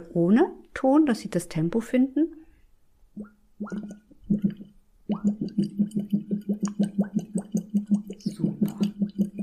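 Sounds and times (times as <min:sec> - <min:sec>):
speech: 0:00.0 - 0:02.4, 0:03.2 - 0:06.8
bubbling blown through a tube into water imitating a tractor: 0:03.2 - 0:09.4.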